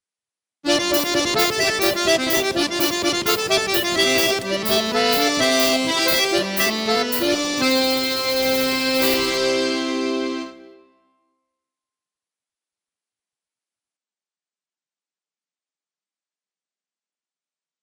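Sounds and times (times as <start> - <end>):
Russian folk song backing track: 0.7 - 10.7.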